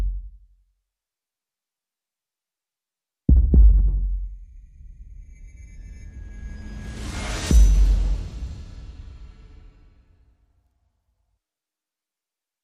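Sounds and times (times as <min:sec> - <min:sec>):
drums: 0:03.3 - 0:04.2, 0:07.0 - 0:09.7.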